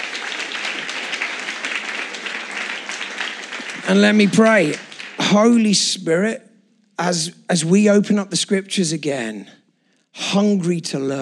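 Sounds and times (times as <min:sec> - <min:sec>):
audience applause: 0:00.0 - 0:05.7
speech: 0:03.9 - 0:09.6, 0:10.2 - 0:11.2.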